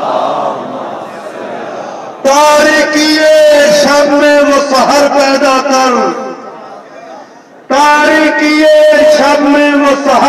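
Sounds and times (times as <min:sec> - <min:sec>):
crowd chanting salawat in response to a call: 0:00.0 - 0:02.2
speech: 0:02.3 - 0:06.2, 0:08.4 - 0:10.2.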